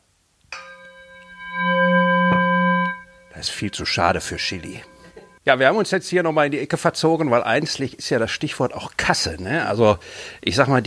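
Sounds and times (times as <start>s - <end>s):
gong being struck: 0.6s - 5.4s
speech: 3.4s - 4.9s, 5.5s - 10.8s.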